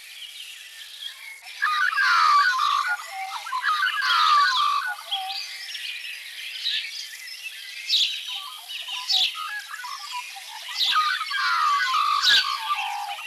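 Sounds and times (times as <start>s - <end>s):
magpie calls: 1.6s - 5.4s, 10.8s - 13.2s.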